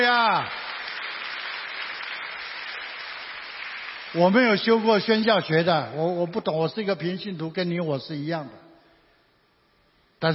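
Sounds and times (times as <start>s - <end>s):
audience applause: 0.0s - 5.2s
speech: 4.1s - 8.6s, 10.2s - 10.3s.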